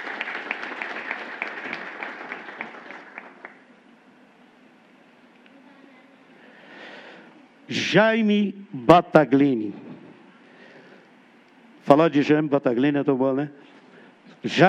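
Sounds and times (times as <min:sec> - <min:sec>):
audience applause: 0:00.0 - 0:03.7
speech: 0:07.7 - 0:09.8, 0:11.9 - 0:13.6, 0:14.4 - 0:14.6.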